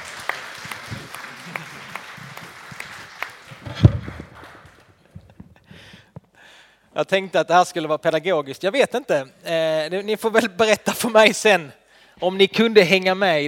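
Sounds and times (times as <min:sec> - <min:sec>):
audience applause: 0:00.0 - 0:05.0
speech: 0:07.0 - 0:13.4.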